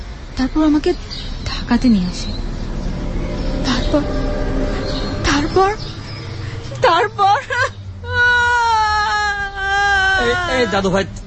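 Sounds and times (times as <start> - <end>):
speech: 0.4 - 2.6, 3.6 - 4.7, 5.4 - 5.9, 6.8 - 7.7, 10.2 - 11.2
small child crying in a high wail: 8.0 - 10.8.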